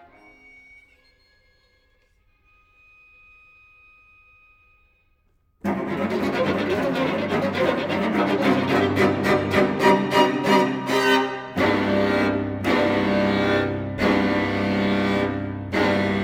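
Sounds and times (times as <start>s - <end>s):
string quartet: 5.6s - 16.2s.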